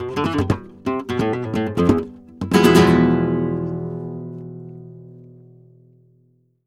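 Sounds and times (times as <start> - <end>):
flamenco guitar phrase in E: 0.0 - 6.3.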